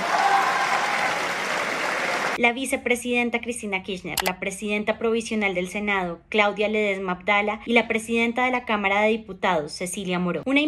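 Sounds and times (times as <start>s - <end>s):
large assembly applauding: 0.0s - 2.4s
speech: 2.4s - 10.6s.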